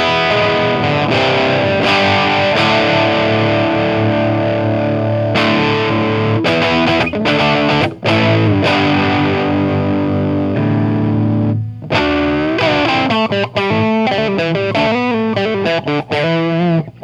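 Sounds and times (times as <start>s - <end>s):
electric guitar with bridge pickup: 0.0s - 17.0s.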